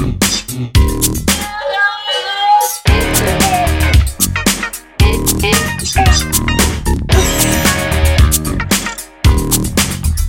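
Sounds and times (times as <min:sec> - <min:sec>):
Linn LM1 LinnDrum drum machine: 0:00.2 - 0:01.5, 0:02.8 - 0:10.1.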